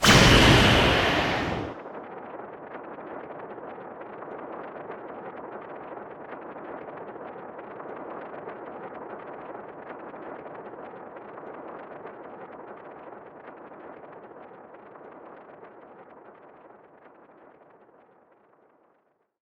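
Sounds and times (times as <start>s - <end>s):
heal effect: 0.0s - 1.8s.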